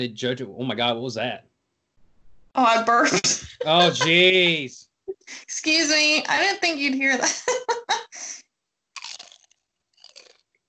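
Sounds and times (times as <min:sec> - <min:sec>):
speech: 0:00.0 - 0:01.5, 0:02.6 - 0:08.4
laughter: 0:02.8 - 0:04.8, 0:07.1 - 0:08.3
crunchy chewing while eating: 0:09.0 - 0:10.4.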